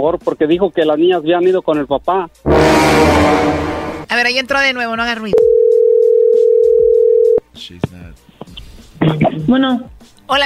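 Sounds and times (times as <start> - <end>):
speech: 0.0 - 5.5, 7.6 - 7.9, 9.0 - 10.4
telephone tone after a dropped call: 5.4 - 7.4.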